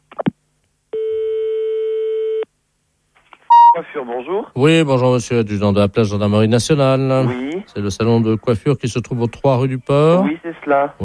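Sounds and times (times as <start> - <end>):
long steady telephone tone: 1.0 - 2.5, 3.5 - 3.8
telephone keypad dialing tones as someone phones the police: 3.5 - 3.8
speech: 3.8 - 11.0.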